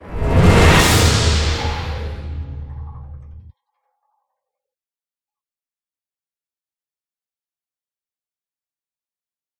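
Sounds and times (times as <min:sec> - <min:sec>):
transition sound: 0:00.0 - 0:03.5.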